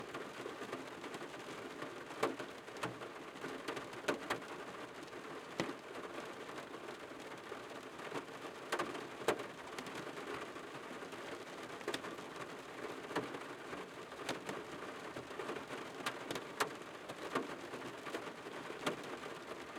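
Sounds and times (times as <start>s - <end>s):
moderate rain on a car heard from the front seat: 0.0s - 19.7s.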